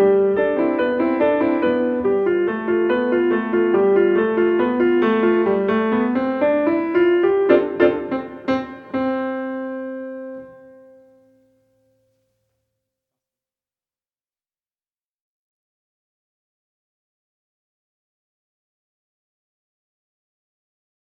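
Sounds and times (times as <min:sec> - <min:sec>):
march music: 0:00.1 - 0:09.6.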